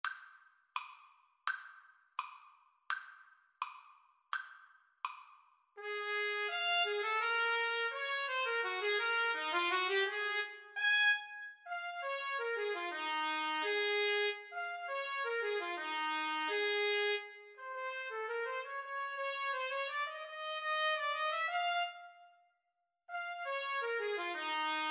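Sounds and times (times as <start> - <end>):
trumpet duet: 5.8 - 22.1, 23.1 - 24.9.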